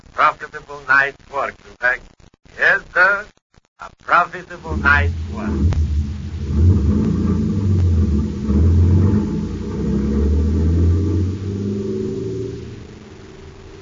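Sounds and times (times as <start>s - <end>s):
speech: 0.2s - 5.7s
big truck rumbling: 4.5s - 13.8s.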